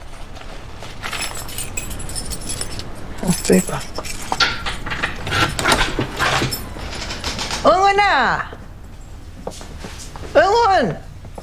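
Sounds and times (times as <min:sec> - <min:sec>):
steady hiss: 0:00.0 - 0:11.4
keys jangling: 0:00.2 - 0:07.7
speech: 0:03.4 - 0:04.1, 0:08.0 - 0:08.5, 0:10.4 - 0:11.0.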